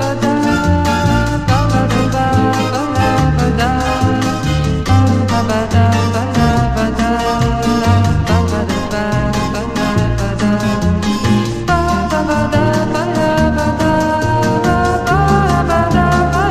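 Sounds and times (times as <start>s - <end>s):
beach samba bossa nova music: 0.0s - 16.4s.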